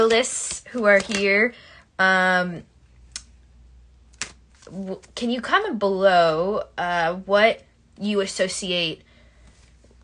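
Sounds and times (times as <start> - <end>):
tarot cards shuffled by hand: 0.0 - 1.4, 4.1 - 5.2
speech: 0.0 - 2.7, 4.7 - 9.1.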